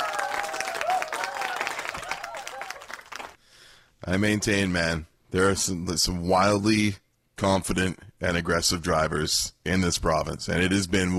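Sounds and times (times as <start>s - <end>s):
round of applause: 0.0s - 3.4s
speech: 4.1s - 11.1s.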